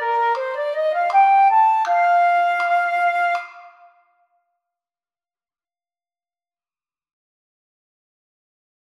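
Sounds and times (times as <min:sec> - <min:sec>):
flute: 0:00.0 - 0:04.4.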